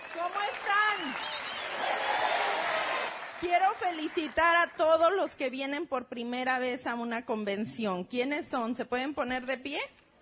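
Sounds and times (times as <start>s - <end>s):
audience applause: 0.0s - 4.4s
speech: 0.2s - 1.9s, 3.4s - 10.0s.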